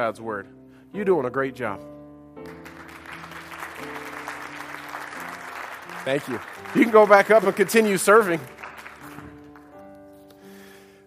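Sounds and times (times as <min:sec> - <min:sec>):
speech: 0:00.0 - 0:02.0, 0:06.0 - 0:08.6
audience applause: 0:02.5 - 0:09.8.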